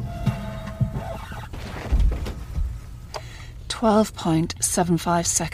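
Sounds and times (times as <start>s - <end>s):
record scratch on a turntable: 0.1s - 1.6s
speech: 3.8s - 5.5s.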